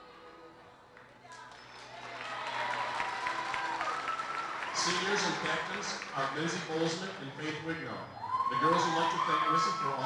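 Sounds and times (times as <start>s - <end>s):
crowd cheers: 1.8s - 6.1s, 8.1s - 10.0s
audience applause: 1.8s - 7.1s
speech: 4.8s - 10.0s.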